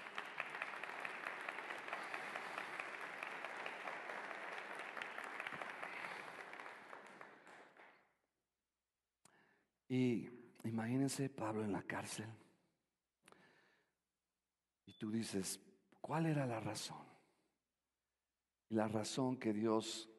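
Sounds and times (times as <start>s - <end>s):
applause: 0.0s - 8.1s
speech: 9.9s - 12.4s, 15.0s - 17.1s, 18.7s - 20.1s.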